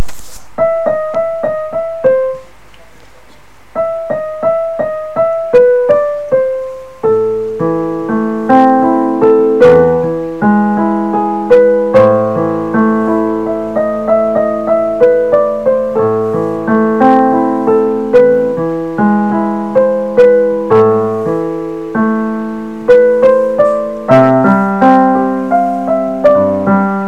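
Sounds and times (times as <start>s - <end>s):
person learning a piano piece: 0.0s - 27.0s.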